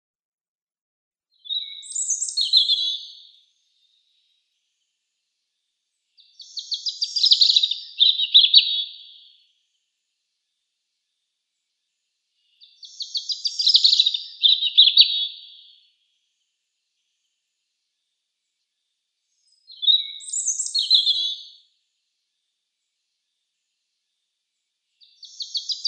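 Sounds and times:
European robin singing: 0:01.4 - 0:04.3, 0:06.2 - 0:09.4, 0:12.4 - 0:15.9, 0:19.3 - 0:21.6, 0:25.0 - 0:25.8.

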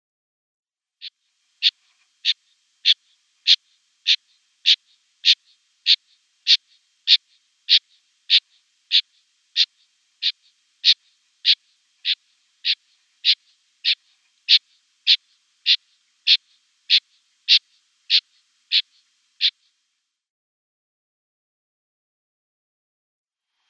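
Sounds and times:
male rock partridge and red-legged partridge hybrid display call: 0:01.6 - 0:19.7.

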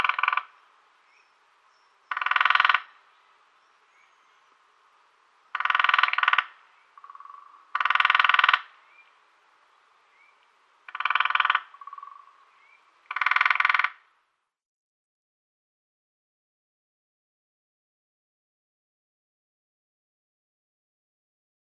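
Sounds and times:
Lesser Spotted Woodpecker drumming: 0:00.0 - 0:00.6, 0:02.1 - 0:03.0, 0:05.5 - 0:09.2, 0:10.1 - 0:14.1.

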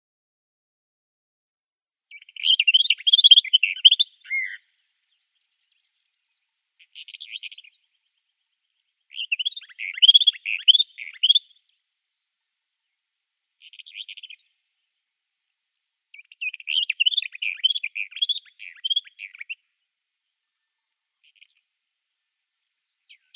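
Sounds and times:
Eastern Orphean Warbler singing: 0:02.1 - 0:23.3.

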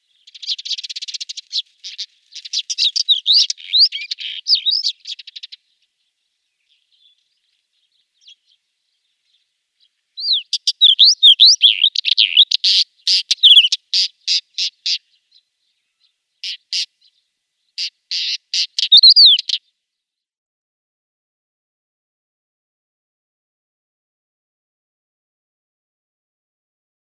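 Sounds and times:
pied wheatear song: 0:00.1 - 0:05.6, 0:10.2 - 0:15.2, 0:15.9 - 0:17.0, 0:17.8 - 0:19.6.

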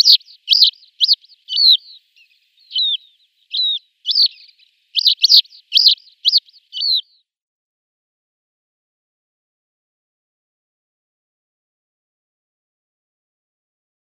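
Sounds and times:
Lesser Short-toed Lark flight calls: 0:00.0 - 0:07.2.

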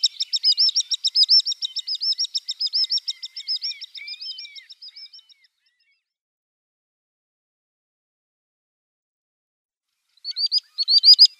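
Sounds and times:
male common sandpiper display call: 0:00.0 - 0:05.2, 0:10.3 - 0:11.3.

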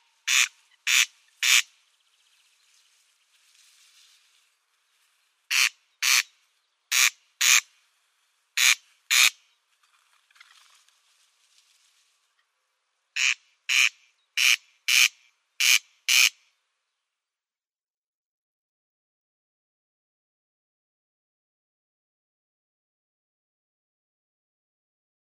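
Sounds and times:
Corn crake display call, harsh grating crex-crex rasps: 0:00.0 - 0:01.8, 0:05.5 - 0:06.3, 0:06.9 - 0:07.7, 0:08.6 - 0:09.4, 0:13.2 - 0:16.4.

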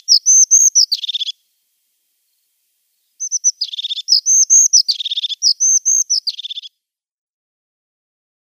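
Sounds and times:
Crested tit giving rapid high chattering phrases of short slurred notes: 0:00.0 - 0:01.4, 0:03.2 - 0:06.7.

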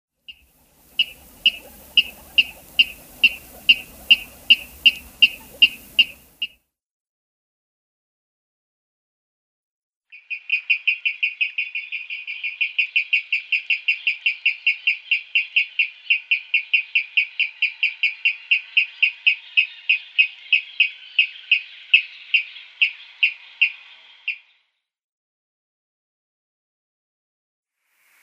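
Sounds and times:
water rail display call: 0:00.2 - 0:06.6, 0:10.1 - 0:24.7, 0:28.0 - 0:28.2.

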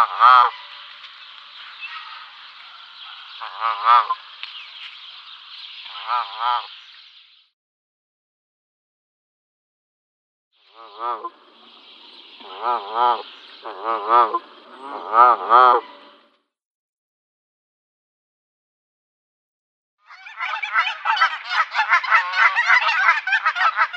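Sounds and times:
flock of Canada geese honking and cackling: 0:00.0 - 0:00.9, 0:03.2 - 0:04.2, 0:10.8 - 0:11.4, 0:12.4 - 0:16.1, 0:20.1 - 0:23.9.

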